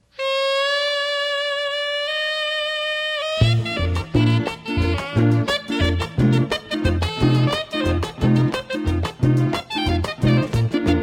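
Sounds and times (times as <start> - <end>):
saxophone playing: 0.0 - 11.0.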